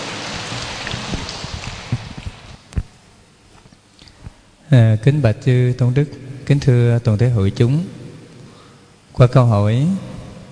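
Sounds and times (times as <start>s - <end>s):
audience applause: 0.0s - 2.4s
speech: 4.7s - 8.0s, 9.2s - 10.1s.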